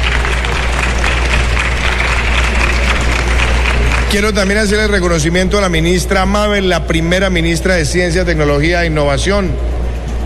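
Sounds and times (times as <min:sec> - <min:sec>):
audience applause: 0:00.0 - 0:05.3
low electrical hum: 0:00.0 - 0:10.2
speech: 0:04.1 - 0:09.7.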